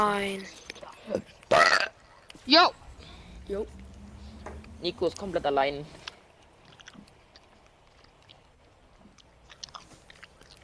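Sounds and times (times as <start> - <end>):
speech: 0.0 - 1.6, 2.4 - 2.8, 3.5 - 3.8, 4.4 - 6.0
chewing gum: 6.3 - 10.6.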